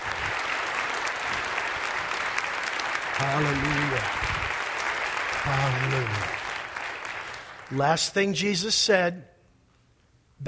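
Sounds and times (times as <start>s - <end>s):
audience clapping: 0.0s - 8.3s
speech: 3.2s - 4.6s, 5.4s - 6.4s, 7.7s - 9.3s.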